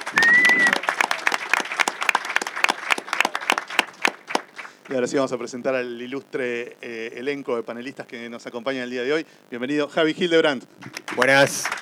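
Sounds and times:
crowd applauding with dense steady clapping: 0:00.0 - 0:04.9, 0:10.8 - 0:11.8
brief high whistle: 0:00.1 - 0:00.9
speech: 0:04.9 - 0:11.8.

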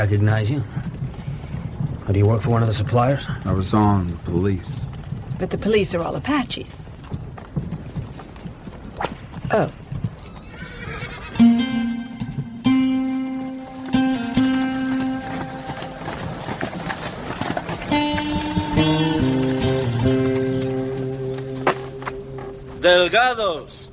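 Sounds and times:
speech: 0:00.0 - 0:01.0, 0:02.1 - 0:06.9, 0:09.5 - 0:09.8
hooves clip-clopping: 0:00.0 - 0:23.9
horses whinnying at a stagecoach relay station: 0:07.2 - 0:12.6, 0:13.6 - 0:21.9.

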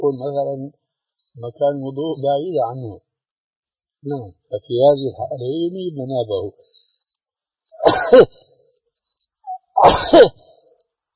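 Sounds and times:
speech: 0:00.0 - 0:03.0, 0:04.0 - 0:06.8, 0:07.8 - 0:08.5, 0:09.8 - 0:10.4
person sneezing: 0:07.8 - 0:08.3, 0:09.8 - 0:10.4.

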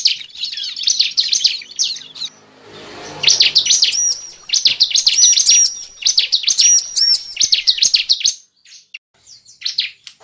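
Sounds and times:
lovebird chattering calls: 0:00.0 - 0:02.3, 0:03.3 - 0:08.9.

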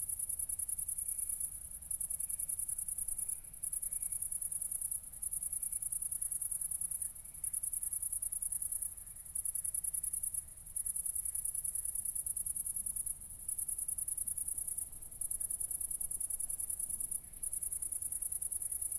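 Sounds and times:
cricket chirping: 0:00.0 - 0:18.9.

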